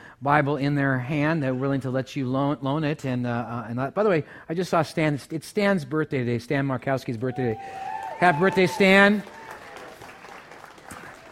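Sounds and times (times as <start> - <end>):
speech: 0.2 - 9.4
audience clapping: 7.6 - 11.2.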